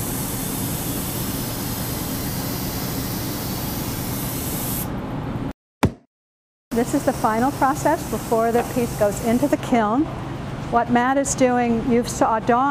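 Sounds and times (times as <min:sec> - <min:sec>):
large glaze paint sprayer spraying: 0:00.0 - 0:04.9, 0:06.8 - 0:09.7
speech: 0:06.8 - 0:12.7.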